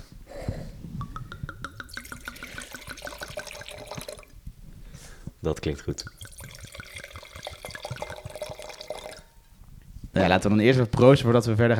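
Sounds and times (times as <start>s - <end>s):
wine glugging from a bottle into a glass: 1.0s - 4.4s, 5.9s - 9.6s
speech: 5.4s - 6.3s, 10.2s - 11.7s.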